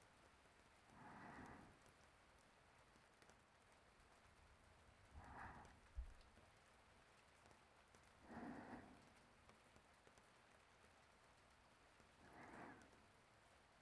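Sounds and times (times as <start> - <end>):
sleeping breathing: 0.9 - 1.9, 5.1 - 6.2, 8.2 - 9.3, 12.2 - 13.1.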